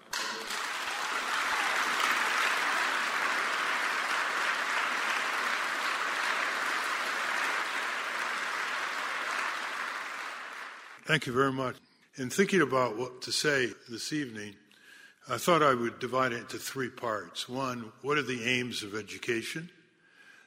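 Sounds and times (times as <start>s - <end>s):
audience applause: 0.0s - 11.0s
speech: 11.1s - 14.6s, 15.2s - 19.8s.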